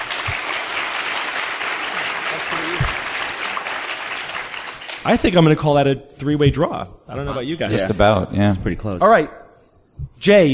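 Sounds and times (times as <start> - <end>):
audience applause: 0.0 - 5.4
speech: 2.4 - 3.0, 5.0 - 9.4, 10.0 - 10.5
faint low thumps: 2.8 - 3.1, 6.4 - 8.0.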